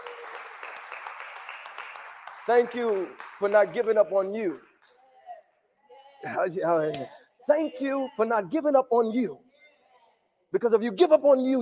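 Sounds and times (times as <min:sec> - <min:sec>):
audience clapping: 0:00.0 - 0:05.0
speech: 0:02.5 - 0:04.7, 0:06.2 - 0:09.4, 0:10.5 - 0:11.6.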